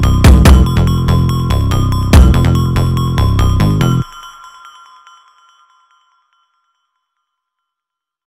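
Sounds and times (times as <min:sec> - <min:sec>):
sped-up phonk music: 0:00.0 - 0:06.3.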